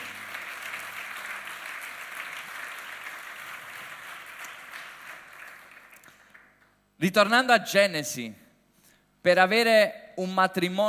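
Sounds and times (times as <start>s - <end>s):
audience applause: 0.0s - 6.6s
speech: 7.0s - 8.4s, 9.2s - 10.8s.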